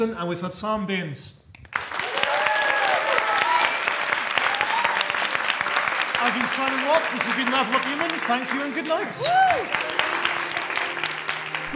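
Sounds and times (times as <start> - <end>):
speech: 0.0 - 1.4, 6.2 - 10.0
audience applause: 1.7 - 11.7
faint cheers and whistles: 2.0 - 5.3, 9.1 - 10.4.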